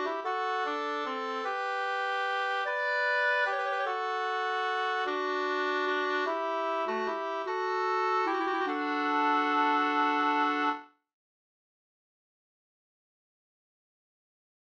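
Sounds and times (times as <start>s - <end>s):
bridal waltz music: 0.0s - 10.8s.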